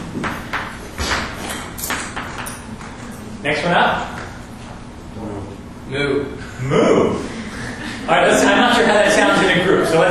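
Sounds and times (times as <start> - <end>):
faint hum: 0.0 - 10.0
hand claps: 0.2 - 3.0
speech: 3.4 - 4.2, 5.9 - 7.2, 8.1 - 10.0.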